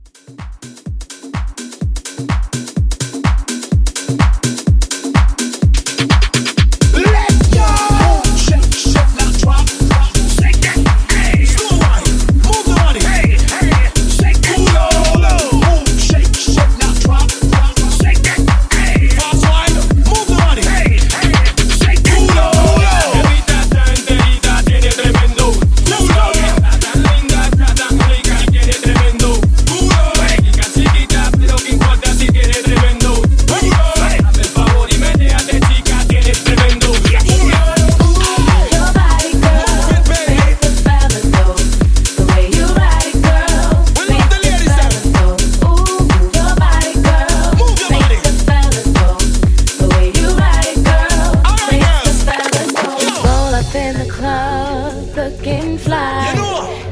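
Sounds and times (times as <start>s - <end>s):
house mashup at 126 bpm: 0.0s - 56.9s.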